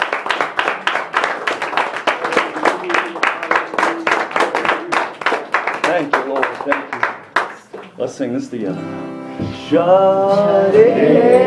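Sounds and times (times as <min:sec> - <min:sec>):
crowd clapping hands in praise: 0:00.0 - 0:08.0
speech: 0:06.0 - 0:07.1, 0:08.0 - 0:11.4.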